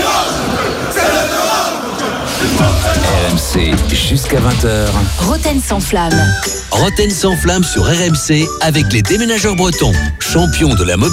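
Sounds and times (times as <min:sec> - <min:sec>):
stadium crowd at the Parc des Princes: 0:00.0 - 0:07.5
stadium sound system: 0:02.4 - 0:11.1
speech: 0:02.6 - 0:11.1.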